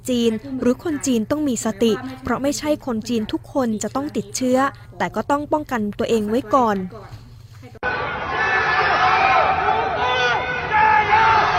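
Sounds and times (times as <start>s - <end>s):
speech: 0.0s - 7.2s
Wuhan residents shouting slogans from apartment buildings: 7.8s - 11.5s.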